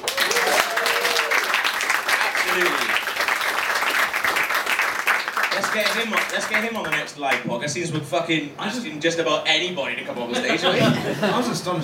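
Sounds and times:
crowd applause: 0.0s - 7.1s
speech: 5.6s - 11.8s
laughter: 10.3s - 11.8s.

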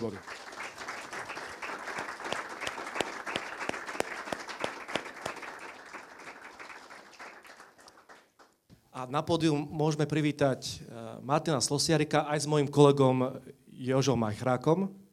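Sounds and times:
speech: 0.0s - 0.4s, 9.0s - 15.0s
audience applause: 0.0s - 8.5s.

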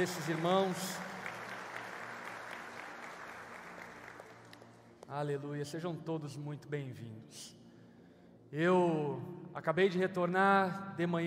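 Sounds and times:
speech: 0.0s - 1.1s, 5.1s - 7.6s, 8.5s - 11.2s
audience applause: 0.0s - 4.6s.

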